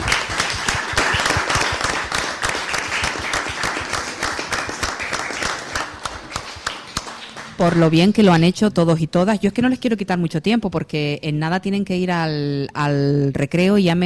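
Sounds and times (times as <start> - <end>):
schoolchildren applauding: 0.0 - 8.1
speech: 7.6 - 14.0.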